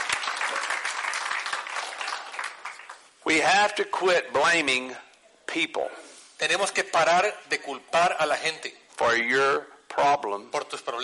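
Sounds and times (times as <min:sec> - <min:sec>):
audience clapping: 0:00.0 - 0:03.2
speech: 0:03.3 - 0:11.0.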